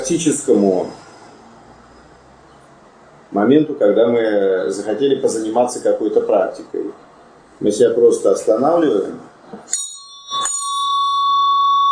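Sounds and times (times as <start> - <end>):
speech: 0.1 - 1.0, 3.3 - 9.8
small hand bell ringing: 9.7 - 11.9.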